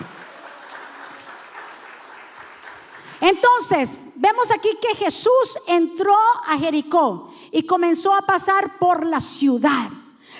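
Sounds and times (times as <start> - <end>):
crowd applauding: 0.0 - 3.2
speech: 3.2 - 10.3.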